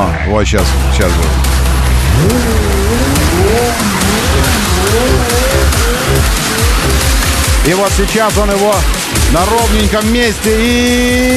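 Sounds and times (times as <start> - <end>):
speech: 0.0 - 1.6, 2.2 - 4.0, 7.6 - 11.3
race car engine whining: 0.0 - 11.3
race car tires skidding and squealing: 1.8 - 7.8.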